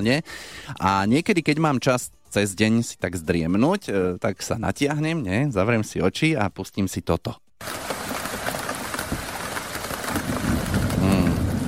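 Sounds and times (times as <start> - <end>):
speech: 0.0 - 7.8
pattering rain: 7.6 - 11.6.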